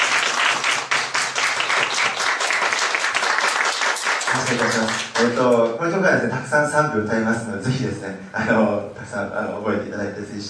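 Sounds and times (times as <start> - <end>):
welcoming applause: 0.0 - 5.5
speech: 4.5 - 10.4.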